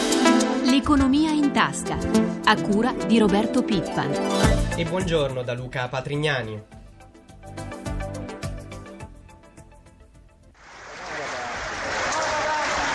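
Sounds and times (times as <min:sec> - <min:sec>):
speech: 0:00.8 - 0:06.8
Fincantieri workers applauding in Genoa: 0:10.8 - 0:12.9.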